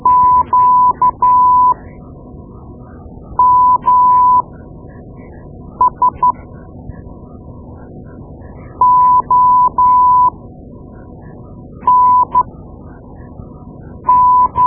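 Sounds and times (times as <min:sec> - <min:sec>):
morse code: 0:00.0 - 0:01.8, 0:03.4 - 0:04.4, 0:08.8 - 0:10.3, 0:11.9 - 0:12.4, 0:14.1 - 0:14.6.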